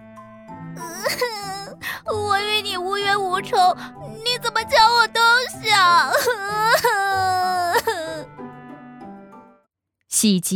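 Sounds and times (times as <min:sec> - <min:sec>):
speech: 0:00.8 - 0:07.3, 0:10.2 - 0:10.5
voice actor fake crying: 0:00.8 - 0:08.3.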